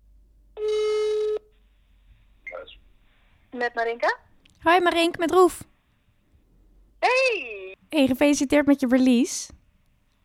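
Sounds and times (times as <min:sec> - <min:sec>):
ringback tone of an outgoing phone call: 0:00.6 - 0:01.5
speech: 0:03.6 - 0:05.7, 0:07.3 - 0:09.6.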